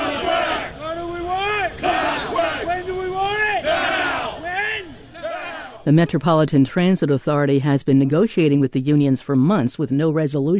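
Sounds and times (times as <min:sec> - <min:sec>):
striking railroad workers chanting in unison: 0:00.0 - 0:06.1
speech: 0:05.8 - 0:10.5.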